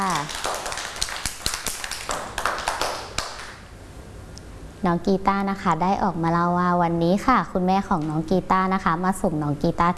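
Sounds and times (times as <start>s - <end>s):
children clapping: 0.0s - 3.6s
speech: 4.8s - 9.9s.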